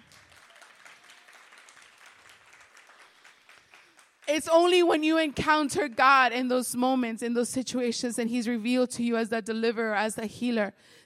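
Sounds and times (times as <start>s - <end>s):
audience clapping hands: 0.0s - 6.2s
speech: 4.3s - 11.0s.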